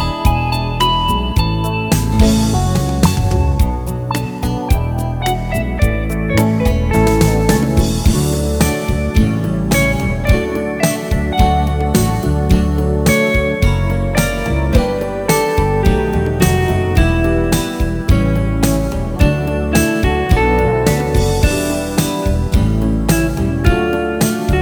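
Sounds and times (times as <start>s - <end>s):
classical guitar electric jazz: 0.0s - 24.6s.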